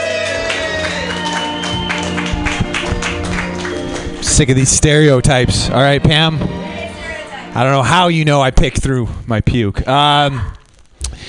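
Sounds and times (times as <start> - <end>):
open mic audience applauding a comedian: 0.0 - 5.1
speech: 4.4 - 6.6, 7.6 - 10.6.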